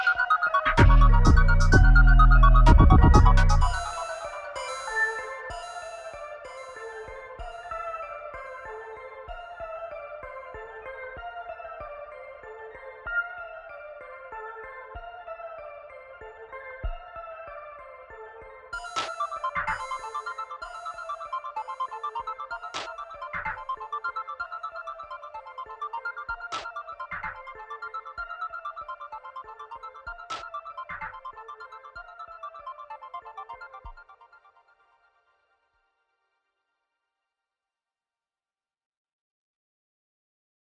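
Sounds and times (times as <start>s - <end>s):
instrumental music: 0.0s - 7.9s, 18.7s - 34.4s.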